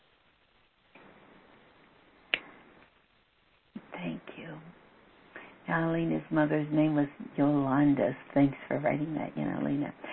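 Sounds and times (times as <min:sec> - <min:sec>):
finger snap: 0:02.3 - 0:02.9
speech: 0:04.0 - 0:04.8, 0:05.7 - 0:10.1.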